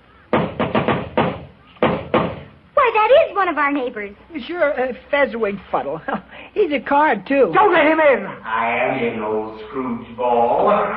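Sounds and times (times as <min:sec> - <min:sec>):
loud hollow knocking on a door: 0:00.3 - 0:02.5
speech: 0:03.4 - 0:10.9.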